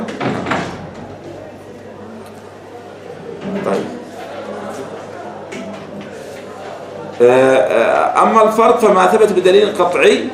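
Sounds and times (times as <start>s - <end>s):
door closing with a scraping thud: 0.0s - 1.3s
faint murmur: 0.0s - 10.3s
speech: 7.2s - 10.3s.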